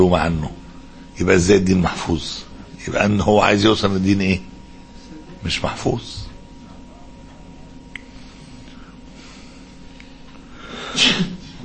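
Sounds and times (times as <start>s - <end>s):
speech: 0.0s - 0.6s, 1.2s - 4.5s, 5.4s - 6.2s
person sneezing: 10.7s - 11.6s.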